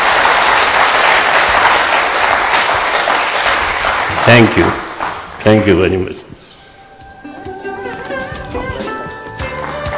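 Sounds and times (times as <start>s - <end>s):
loud applause from a large crowd filling a hall: 0.0s - 5.9s, 9.4s - 9.9s
speech: 4.3s - 4.8s, 5.4s - 6.4s.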